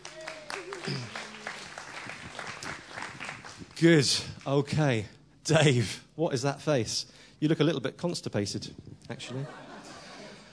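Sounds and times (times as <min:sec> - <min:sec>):
audience applause: 0:00.0 - 0:04.3
laughter: 0:00.5 - 0:01.5, 0:09.2 - 0:10.5
speech: 0:00.9 - 0:01.1, 0:03.8 - 0:09.6.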